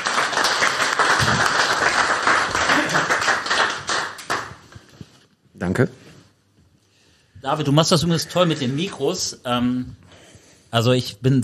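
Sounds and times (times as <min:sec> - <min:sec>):
audience applause: 0:00.0 - 0:04.7
speech: 0:05.6 - 0:06.0, 0:07.4 - 0:10.1, 0:10.7 - 0:11.4.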